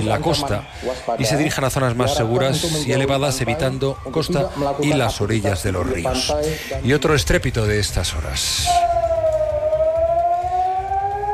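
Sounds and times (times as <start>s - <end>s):
speech: 0.0s - 9.0s
air raid siren wailing in Israel: 8.6s - 11.3s.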